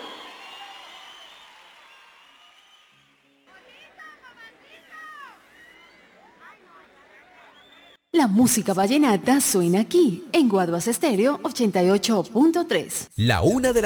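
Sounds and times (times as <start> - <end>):
crowd applause: 0.0 - 6.5
speech: 8.2 - 13.8.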